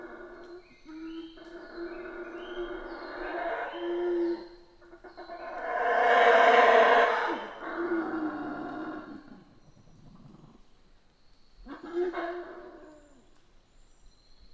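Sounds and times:
howler monkey howling: 0.0 - 9.5, 11.7 - 13.3.

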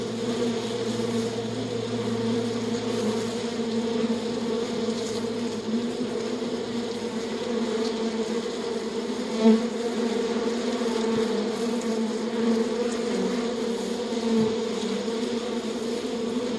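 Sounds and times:
bees buzzing: 0.0 - 16.5.

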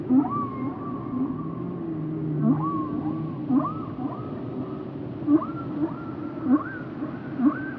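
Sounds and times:
whale moans and squeaks: 0.1 - 1.6, 2.2 - 4.3, 5.3 - 7.7.

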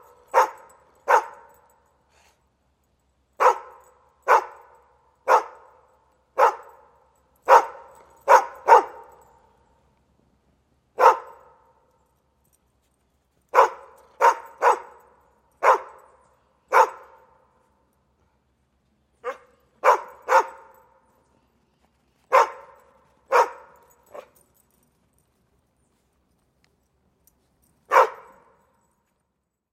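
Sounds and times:
dog barking: 0.0 - 1.6, 3.4 - 5.8, 6.4 - 9.3, 11.0 - 11.7, 13.5 - 16.1, 16.7 - 17.3, 19.2 - 20.9, 22.3 - 24.4, 27.9 - 28.6.

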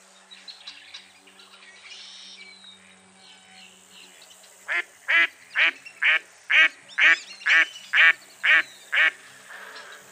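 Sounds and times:
Common goldeneye rasping calls: 4.7 - 10.0.

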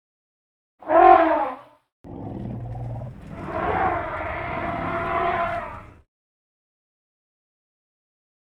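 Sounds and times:
African elephant trumpeting: 0.8 - 1.6, 2.2 - 6.0
African elephant growling rumble: 0.8 - 6.0.

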